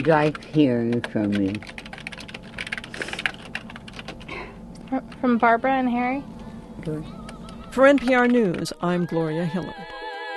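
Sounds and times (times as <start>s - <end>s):
speech: 0.0s - 1.8s, 4.9s - 9.9s
typing on a computer keyboard: 0.0s - 5.3s, 7.3s - 9.0s.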